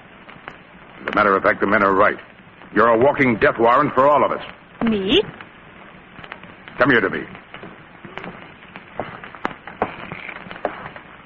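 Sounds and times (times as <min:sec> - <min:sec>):
speech: 0:01.2 - 0:05.4, 0:06.8 - 0:07.4
shoes squeaking while walking: 0:09.8 - 0:11.0.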